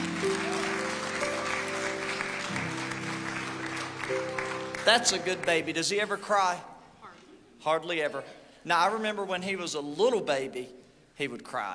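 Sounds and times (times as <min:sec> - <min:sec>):
audience clapping: 0:00.0 - 0:06.1
speech: 0:04.9 - 0:06.7, 0:07.6 - 0:11.7.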